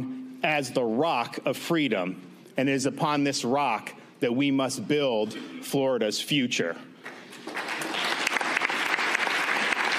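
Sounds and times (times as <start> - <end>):
speech: 0.0 - 6.9
crowd applauding: 7.0 - 9.9.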